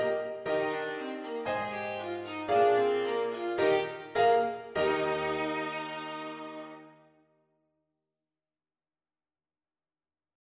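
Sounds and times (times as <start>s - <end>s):
viola: 0.0s - 7.0s.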